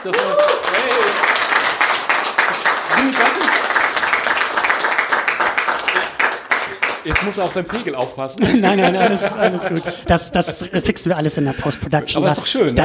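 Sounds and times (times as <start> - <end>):
speech: 0.0 - 1.3, 3.0 - 3.9, 7.1 - 12.8
live audience applause: 0.0 - 8.1
laughter: 2.9 - 3.9, 8.3 - 12.8.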